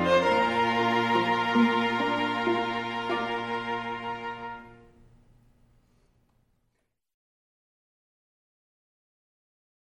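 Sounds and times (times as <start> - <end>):
wedding day music: 0.0 - 5.4.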